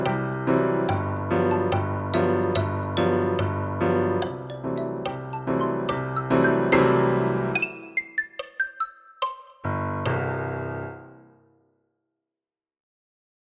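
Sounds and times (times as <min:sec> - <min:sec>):
piano at 72 bpm: 0:00.0 - 0:08.5, 0:09.6 - 0:11.5
xylophone at 72 bpm: 0:00.0 - 0:09.6.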